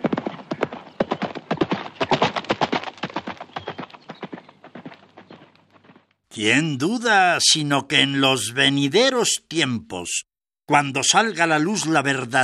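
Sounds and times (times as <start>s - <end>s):
horse hooves clip-clopping on a hard surface: 0.0s - 6.2s
speech: 6.4s - 12.4s.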